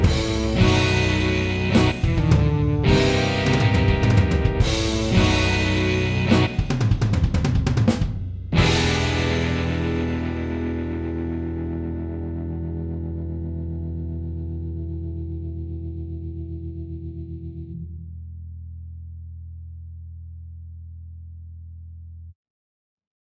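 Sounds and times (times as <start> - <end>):
blues music: 0.0 - 17.8.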